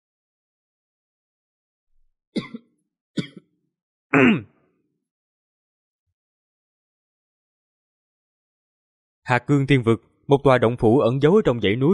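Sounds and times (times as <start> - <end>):
rough rasping throat clearing: 2.4 - 3.5, 4.1 - 4.7
coughing: 2.4 - 4.7
speech: 4.1 - 4.5, 9.3 - 11.9.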